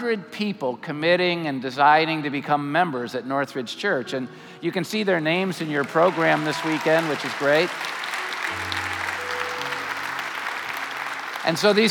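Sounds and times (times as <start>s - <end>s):
speech: 0.0s - 8.7s, 11.4s - 11.9s
audience applause: 5.6s - 11.9s.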